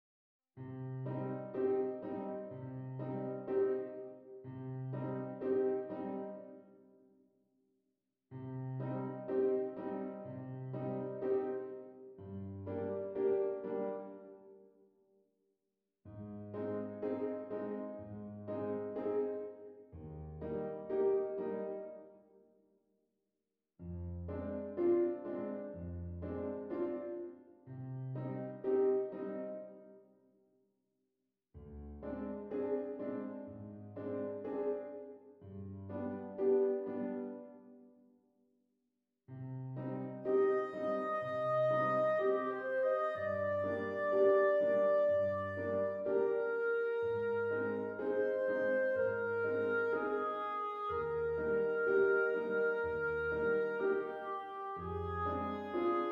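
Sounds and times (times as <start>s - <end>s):
piano: 0.6s - 7.1s, 8.3s - 14.8s, 16.1s - 22.4s, 23.8s - 30.2s, 31.6s - 38.1s, 39.3s - 56.1s.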